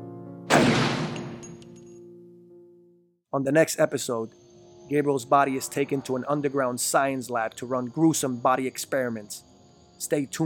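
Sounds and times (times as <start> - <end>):
single gunshot from a pistol in an audio drama: 0.5 - 1.6
quiet tonal backdrop: 1.2 - 10.4
speech: 3.3 - 10.4.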